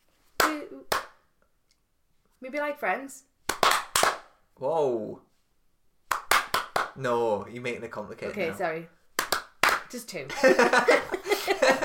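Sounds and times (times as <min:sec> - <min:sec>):
rhythmic hand clapping pattern: 0:00.4 - 0:01.2, 0:03.4 - 0:04.3, 0:06.1 - 0:07.0, 0:09.2 - 0:10.0
speech: 0:00.6 - 0:01.1, 0:02.4 - 0:03.3, 0:04.6 - 0:05.3, 0:07.0 - 0:09.0, 0:09.9 - 0:11.8
laughter: 0:10.3 - 0:11.8.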